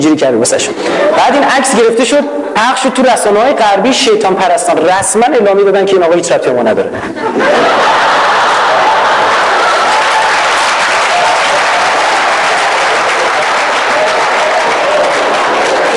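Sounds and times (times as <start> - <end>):
speech: 0.0 - 8.2
laughter: 0.7 - 1.8, 6.9 - 10.7
audience clapping: 7.8 - 15.9.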